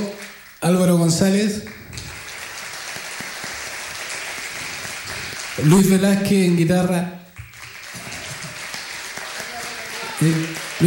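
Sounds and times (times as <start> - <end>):
speech: 0.0 - 1.8, 5.6 - 7.2, 10.2 - 10.8
audience applause: 1.5 - 6.3, 7.3 - 10.8.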